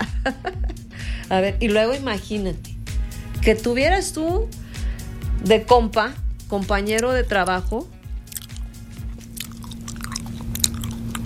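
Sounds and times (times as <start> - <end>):
speech: 0.2 - 0.6, 1.3 - 2.7, 3.4 - 4.6, 5.4 - 8.0
chewing and popping chewing gum: 8.1 - 11.2.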